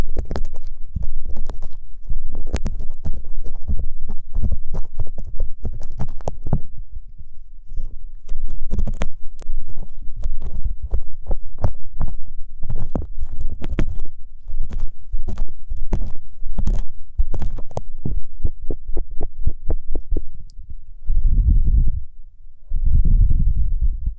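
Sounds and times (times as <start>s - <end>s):
ear cleaning scratching and rubbing clicks: 0.0s - 6.7s, 7.7s - 20.3s
deep thumping rumble: 17.2s - 24.1s.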